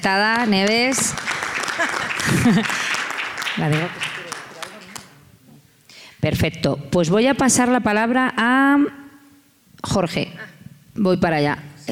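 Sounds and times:
speech: 0.0 - 2.8, 3.6 - 4.2, 6.2 - 9.0, 9.8 - 11.9
audience applause: 0.2 - 5.2
voice rising over clapping: 0.9 - 5.1
laughter: 1.4 - 3.2.

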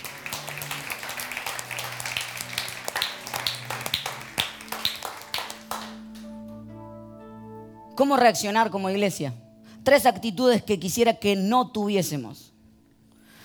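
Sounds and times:
audience applause: 0.0 - 6.3
speech: 8.0 - 12.5.

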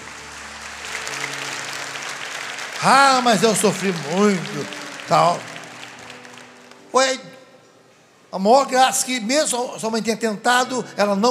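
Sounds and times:
audience applause: 0.0 - 6.9
speech: 2.8 - 5.5, 6.9 - 7.3, 8.3 - 11.2.

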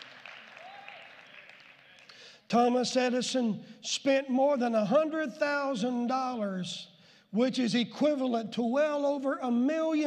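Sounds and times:
audience hand clap of praise: 0.0 - 2.2
speech: 2.5 - 10.0.

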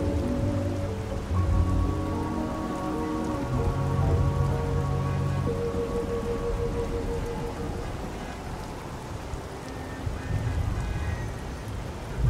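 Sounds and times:
oldies playing in another room: 0.0 - 7.9
traffic through the open window: 0.0 - 12.2.

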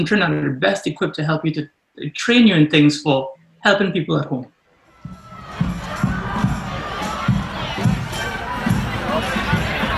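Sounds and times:
speech: 0.0 - 5.2
street protest crowd chanting: 5.0 - 9.9.

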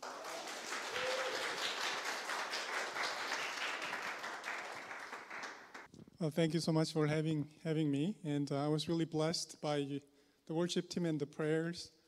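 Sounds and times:
church congregation applauding to welcome a guest speaker: 0.0 - 5.9
speech: 6.2 - 12.0.

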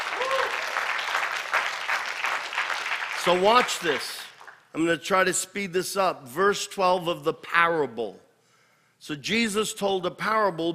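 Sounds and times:
faint cheer: 0.0 - 1.0
audience applauding: 0.0 - 4.6
speech: 3.2 - 8.2, 9.0 - 10.7.

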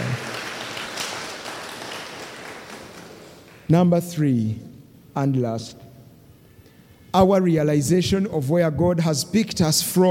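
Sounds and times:
audience clapping hands: 0.0 - 3.7
speech: 3.7 - 5.8, 7.1 - 10.0.

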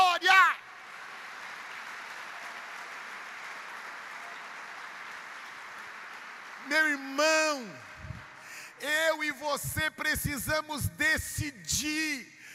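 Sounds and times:
audience applause: 0.0 - 9.3
speech: 6.7 - 7.9, 8.8 - 12.3.

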